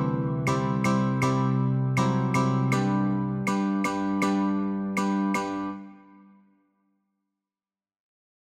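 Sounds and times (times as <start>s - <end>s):
guitar notes and chords: 0.0s - 6.3s.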